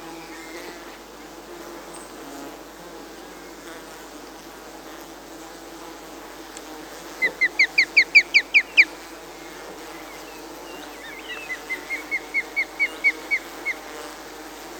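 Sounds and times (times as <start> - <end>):
osprey calling: 7.2 - 9.0, 10.0 - 13.8.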